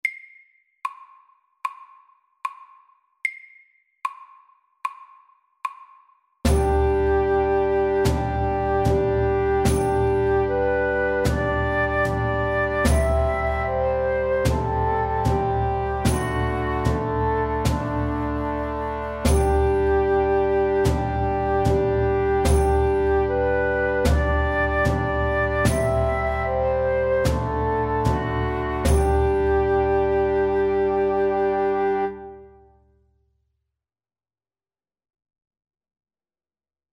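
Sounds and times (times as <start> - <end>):
slow English melody: 6.5 - 32.8.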